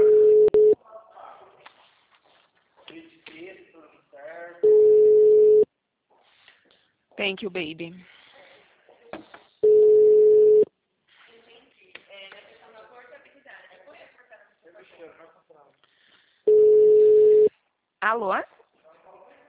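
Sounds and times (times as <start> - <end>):
telephone ringing tones on an outgoing call: 0.0 - 0.8, 4.6 - 5.6, 9.6 - 10.6, 16.5 - 17.5
speech: 7.2 - 8.2, 18.1 - 18.5.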